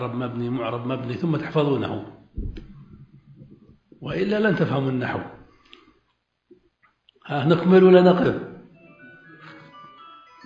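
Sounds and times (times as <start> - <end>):
speech: 0.0 - 2.5, 4.0 - 5.4, 7.3 - 8.5
mobile phone electronic ringtone: 8.7 - 10.4.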